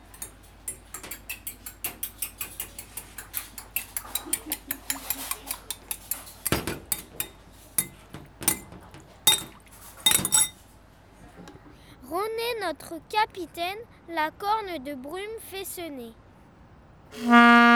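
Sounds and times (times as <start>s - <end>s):
dishes and cutlery clinking while preparing hot chocolate: 0.0s - 10.6s
ringing glassy chime: 6.9s - 8.7s, 9.3s - 10.6s
speech: 12.7s - 16.2s, 17.1s - 17.6s.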